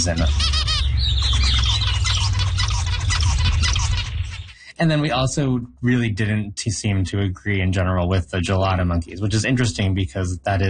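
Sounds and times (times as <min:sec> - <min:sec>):
speech: 0:00.0 - 0:00.6, 0:04.8 - 0:10.6
zebra finch singing: 0:00.0 - 0:04.7
low rumbling hum: 0:00.0 - 0:10.6.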